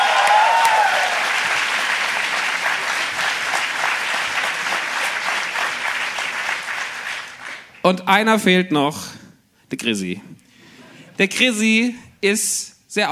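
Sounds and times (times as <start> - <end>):
audience applause: 0.0 - 7.8
speech: 7.9 - 10.3, 11.2 - 13.1.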